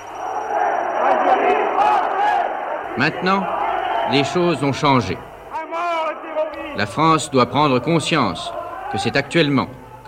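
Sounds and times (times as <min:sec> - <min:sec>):
angry crowd shouting in the street: 0:00.0 - 0:10.0
speech: 0:03.0 - 0:05.3, 0:06.8 - 0:10.0.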